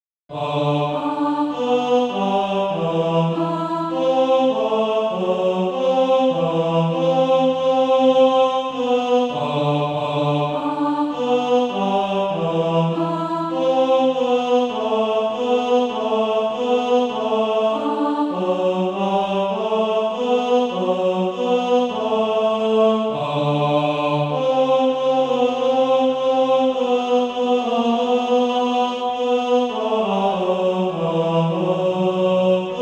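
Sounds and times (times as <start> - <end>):
tenor SATB practice part: 0.3 - 32.8.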